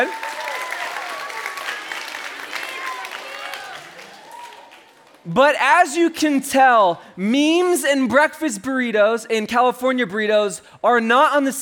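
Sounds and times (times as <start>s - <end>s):
speech: 0.0s - 0.3s, 5.2s - 11.6s
audience clapping: 0.0s - 5.3s.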